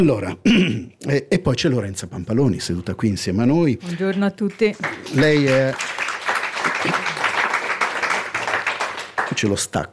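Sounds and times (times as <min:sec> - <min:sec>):
speech: 0:00.0 - 0:06.0, 0:09.3 - 0:09.9
live audience applause: 0:04.6 - 0:09.6.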